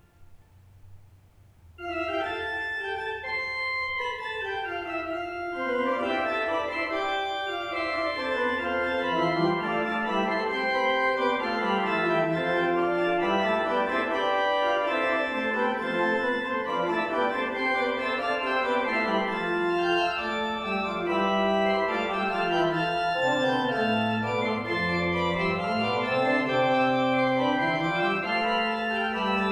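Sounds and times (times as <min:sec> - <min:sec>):
Lydian fugue: 0:01.8 - 0:29.5.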